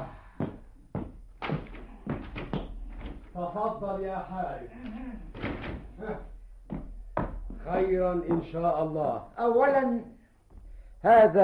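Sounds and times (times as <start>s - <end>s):
door being opened for a visitor in an Arabic audio drama: 0.4s - 3.4s, 4.9s - 8.7s
speech: 3.4s - 6.3s, 7.7s - 10.2s, 11.0s - 11.4s.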